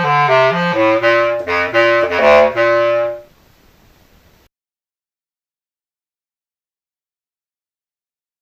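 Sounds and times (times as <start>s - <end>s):
bass clarinet: 0.0s - 3.3s.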